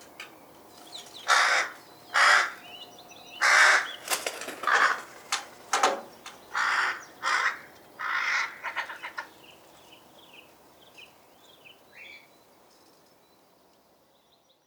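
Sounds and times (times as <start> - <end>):
rook giving harsh grating caws: 1.2 - 2.7, 3.3 - 4.0, 4.6 - 5.2, 6.5 - 9.3.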